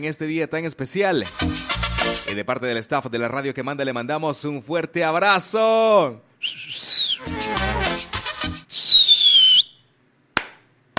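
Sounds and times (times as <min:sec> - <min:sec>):
speech: 0:00.0 - 0:07.7
whistling firework rockets: 0:08.7 - 0:09.7.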